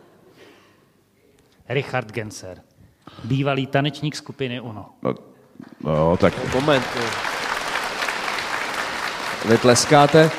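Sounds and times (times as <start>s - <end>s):
speech: 1.7s - 7.3s, 9.4s - 10.3s
audience applause: 5.9s - 10.3s.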